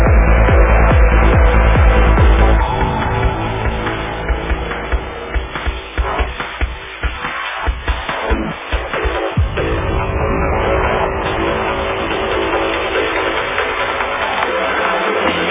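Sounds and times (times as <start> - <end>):
progressive trance drums: 0.0 - 15.4.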